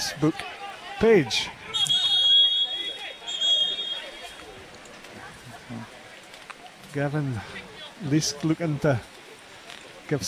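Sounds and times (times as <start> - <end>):
speech: 0.2 - 1.6, 6.9 - 9.1, 10.1 - 10.2
extra loud referee's whistle: 1.6 - 4.4.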